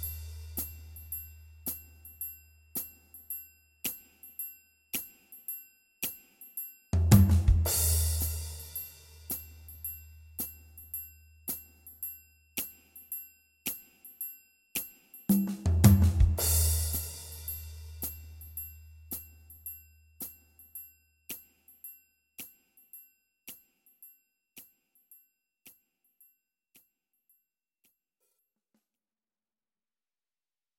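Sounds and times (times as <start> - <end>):
music beat: 7.0 - 9.6, 15.3 - 18.5.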